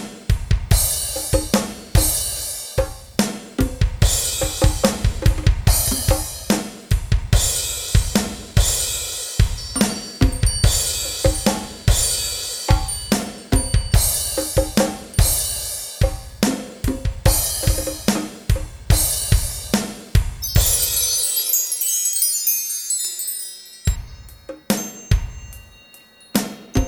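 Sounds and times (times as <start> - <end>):
ambient percussion: 0.0 - 26.8.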